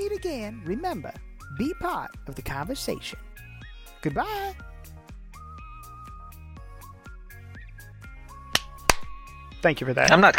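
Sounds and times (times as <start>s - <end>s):
speech: 0.2s - 3.4s, 4.0s - 4.7s, 9.6s - 10.3s
hand clap: 8.5s - 9.3s, 10.0s - 10.3s.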